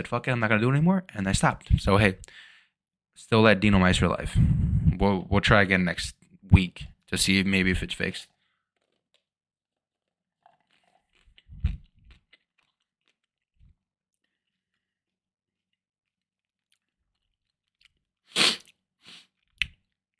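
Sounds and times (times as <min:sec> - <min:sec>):
speech: 0:00.0 - 0:02.5, 0:03.2 - 0:08.3
crunchy chewing of blueberries from a cup: 0:08.3 - 0:20.1.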